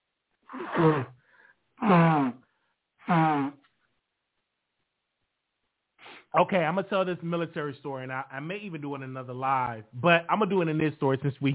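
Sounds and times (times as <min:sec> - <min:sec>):
person blowing nose: 0:00.5 - 0:01.2, 0:01.8 - 0:03.7, 0:06.0 - 0:06.3
speech: 0:00.5 - 0:01.2, 0:01.8 - 0:02.4, 0:03.1 - 0:03.6, 0:06.3 - 0:11.5.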